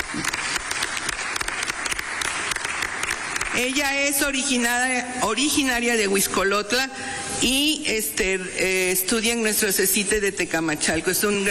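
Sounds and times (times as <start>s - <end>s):
audience applause: 0.0s - 3.8s
speech: 3.6s - 11.4s.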